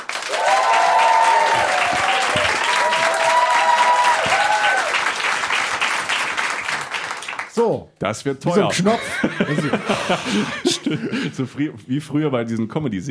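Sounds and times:
live audience clapping: 0.0 - 7.6
speech: 7.7 - 13.0
laughter: 8.6 - 11.7.

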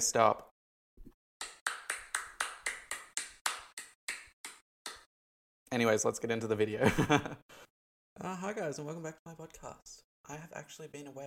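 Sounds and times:
speech: 0.0 - 0.5, 5.7 - 11.2
slow single claps as fake audience: 1.4 - 5.1.

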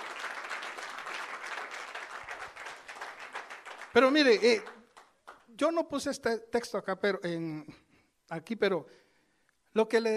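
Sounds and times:
audience applause: 0.0 - 5.4
speech: 4.0 - 4.7, 5.6 - 9.0, 9.8 - 10.1.

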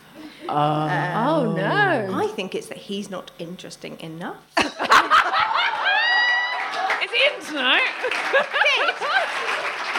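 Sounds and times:
speech: 0.5 - 4.9, 7.5 - 9.8
crowd laughter: 4.6 - 6.4, 8.0 - 9.6
crowd applauding: 5.4 - 9.9
high whooping cheers: 5.5 - 7.0.

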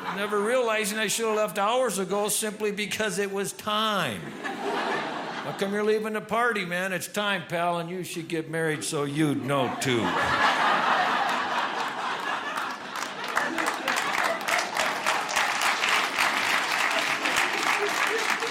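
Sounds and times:
speech: 0.2 - 10.5
scattered laughter and chuckles: 9.6 - 15.0, 16.9 - 18.5
crowd applause: 9.7 - 18.5.

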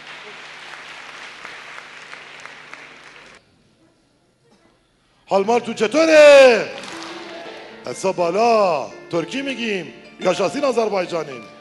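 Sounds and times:
audience applause at a seminar: 0.0 - 3.4, 6.8 - 7.7
speech: 5.3 - 6.8, 7.8 - 11.5.

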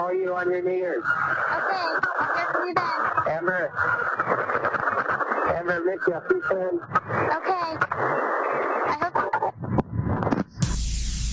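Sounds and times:
speech: 0.0 - 9.3
blow dryer running near a phone: 10.6 - 11.3.

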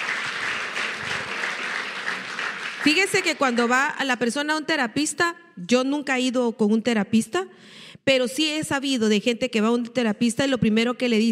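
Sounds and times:
applause: 0.0 - 4.1
speech: 2.8 - 11.3.

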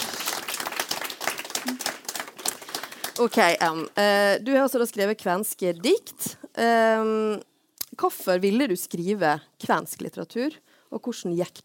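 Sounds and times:
audience applause: 0.0 - 3.9
speech: 1.6 - 1.9, 3.2 - 11.6.

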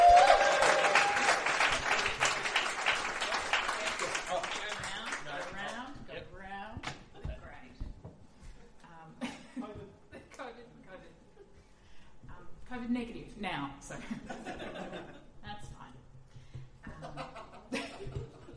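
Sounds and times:
crowd applause: 0.0 - 5.5
laughter: 14.0 - 15.3, 16.8 - 18.5.

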